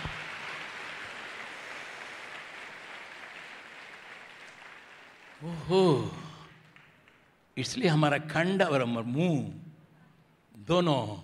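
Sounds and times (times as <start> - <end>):
audience clapping: 0.0 - 7.4
speech: 5.4 - 6.2, 7.6 - 9.6, 10.7 - 11.2.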